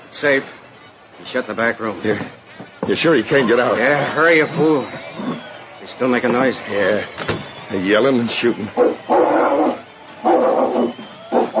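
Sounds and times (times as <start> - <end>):
speech: 0.2 - 0.6, 1.2 - 9.4
dog barking: 8.8 - 11.5.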